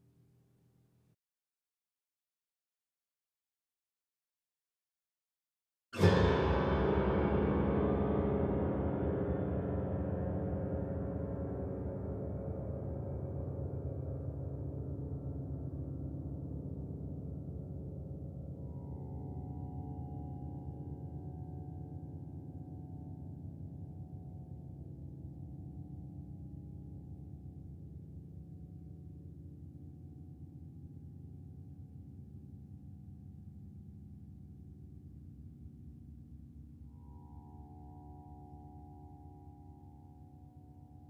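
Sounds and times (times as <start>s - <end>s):
horror grand piano effect: 6.0s - 21.1s.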